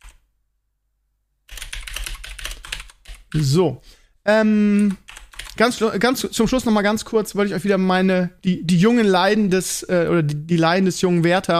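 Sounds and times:
rapid typing on a keyboard while writing a list: 0.0s - 0.2s, 1.5s - 3.5s, 4.8s - 5.9s
speech: 3.3s - 5.0s, 5.6s - 11.5s.

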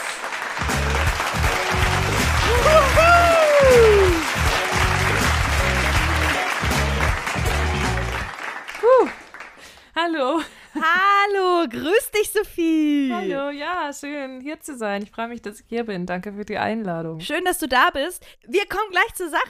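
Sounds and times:
applause: 0.0s - 10.0s
speech: 11.6s - 19.4s.

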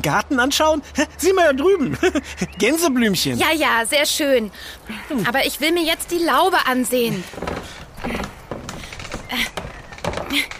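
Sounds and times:
speech: 0.0s - 8.2s, 9.3s - 9.5s
laughter: 1.8s - 2.7s
warped stuck wooden door rattling: 7.1s - 10.5s.

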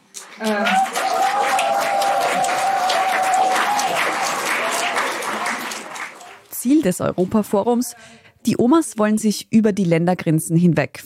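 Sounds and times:
audience applause at a conference: 0.0s - 6.5s
cheer rising above clapping: 0.1s - 6.5s
speech: 0.4s - 0.8s, 6.8s - 11.0s.

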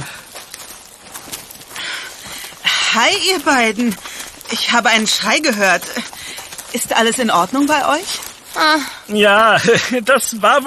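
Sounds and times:
rustling of someone approaching: 0.0s - 10.6s
speech: 3.0s - 10.6s.

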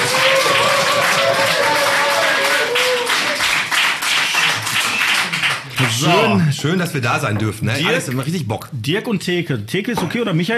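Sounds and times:
clapping in the background: 0.0s - 6.2s
speech: 5.8s - 10.5s.

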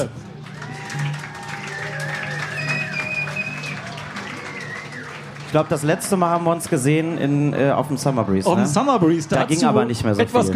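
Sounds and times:
audience applause: 0.0s - 8.3s
speech: 5.5s - 10.5s.

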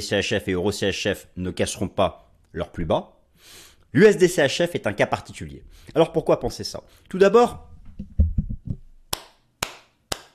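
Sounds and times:
speech: 0.0s - 8.2s
hand clapping: 8.6s - 10.3s.

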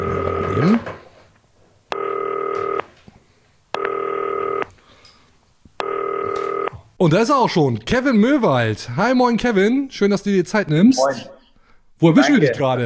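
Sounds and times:
video call ringing: 0.0s - 1.0s, 1.9s - 2.9s, 3.8s - 4.7s, 5.8s - 6.9s
speech: 0.6s - 1.0s, 7.0s - 11.4s, 12.0s - 12.8s.

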